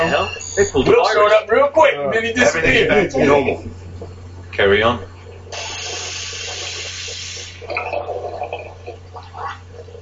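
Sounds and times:
speech: 0:00.1 - 0:05.6
hands being washed under running water from a tap: 0:05.5 - 0:07.8.

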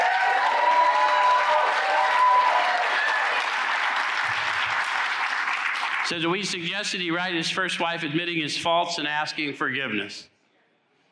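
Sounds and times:
high whoops: 0:00.0 - 0:03.6
audience cheering and applause: 0:00.0 - 0:06.2
speech: 0:06.1 - 0:10.3.

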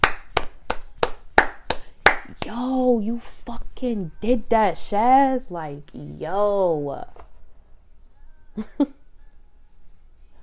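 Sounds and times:
hand clapping: 0:00.0 - 0:02.6
speech: 0:02.4 - 0:07.2, 0:08.6 - 0:09.0.

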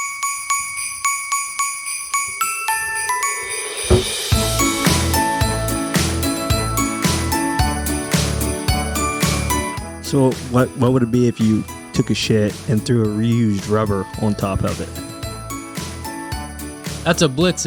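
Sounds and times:
tinkling jingle bells: 0:00.0 - 0:17.6
bouncy thumping bass line in a Christmassy tune: 0:03.9 - 0:05.6
speech: 0:10.1 - 0:15.1, 0:17.0 - 0:17.6.

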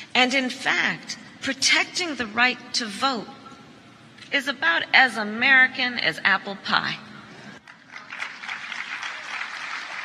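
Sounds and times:
speech: 0:00.2 - 0:03.4, 0:04.3 - 0:07.1
sustained applause from a large audience: 0:07.6 - 0:10.0.

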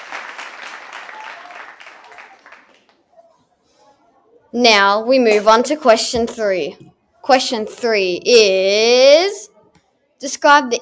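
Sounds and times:
audience round of applause: 0:00.0 - 0:03.0
speech: 0:04.5 - 0:09.5, 0:10.2 - 0:10.7.

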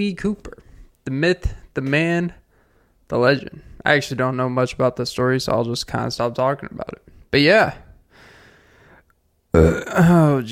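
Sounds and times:
speech: 0:00.0 - 0:02.4, 0:03.1 - 0:07.8, 0:09.5 - 0:10.5
raspy burp: 0:09.5 - 0:10.4.

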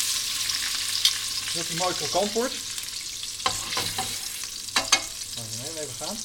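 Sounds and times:
salmon seasoned with salt and pepper frying skin side down in a pan: 0:00.0 - 0:06.2
speech: 0:01.5 - 0:02.7, 0:05.4 - 0:06.2
scraping in a pan: 0:03.4 - 0:05.2.

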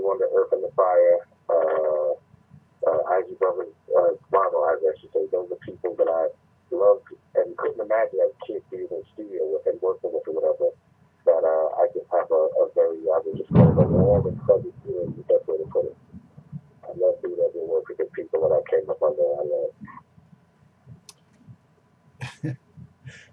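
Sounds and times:
person talking: 0:00.0 - 0:02.2, 0:02.8 - 0:20.1, 0:22.2 - 0:23.3
crash of thunder: 0:13.5 - 0:14.4.

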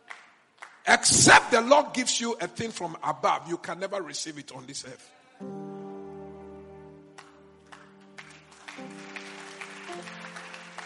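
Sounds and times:
audience clapping: 0:00.0 - 0:01.2, 0:07.1 - 0:10.8
speech: 0:00.9 - 0:05.6.

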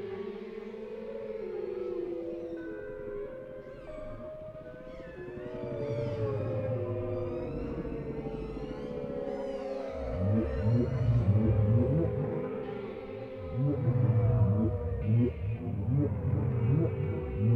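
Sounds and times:
whale song: 0:00.7 - 0:17.5
low rumble: 0:13.4 - 0:17.5.

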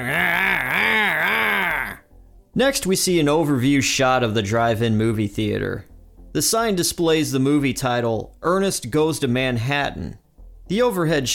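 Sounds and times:
mouth imitation of a chainsaw: 0:00.0 - 0:02.0
speech: 0:02.6 - 0:11.3.

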